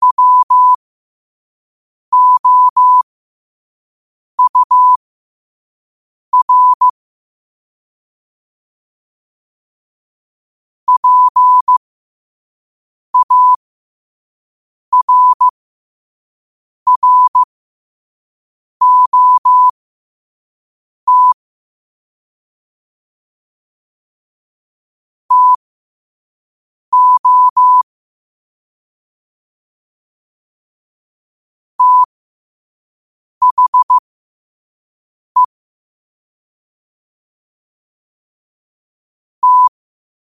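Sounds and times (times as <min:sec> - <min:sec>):
morse code at 5 wpm: 0:00.0 - 0:00.8, 0:02.1 - 0:03.0, 0:04.4 - 0:05.0, 0:06.4 - 0:06.9, 0:10.9 - 0:11.8, 0:13.2 - 0:13.6, 0:14.9 - 0:15.5, 0:16.9 - 0:17.5, 0:18.8 - 0:19.8, 0:21.1 - 0:21.4, 0:25.3 - 0:25.6, 0:26.9 - 0:27.8, 0:31.8 - 0:32.1, 0:33.4 - 0:34.0, 0:39.4 - 0:39.7.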